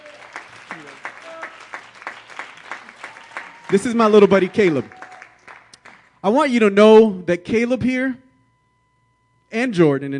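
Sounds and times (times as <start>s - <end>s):
audience round of applause: 0.0s - 6.1s
speech: 0.7s - 1.1s, 3.7s - 5.0s, 6.2s - 8.2s, 9.5s - 10.1s.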